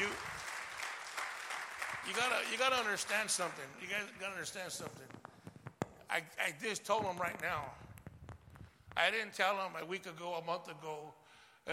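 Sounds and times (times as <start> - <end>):
audience clapping: 0.0 - 5.2
speech: 2.1 - 5.2, 6.1 - 7.8, 9.0 - 11.7.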